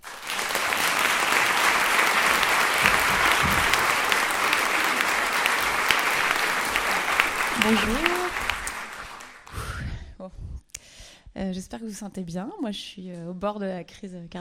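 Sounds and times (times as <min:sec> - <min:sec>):
audience applauding loudly: 0:00.0 - 0:09.6
speech: 0:07.6 - 0:08.2, 0:11.4 - 0:14.4.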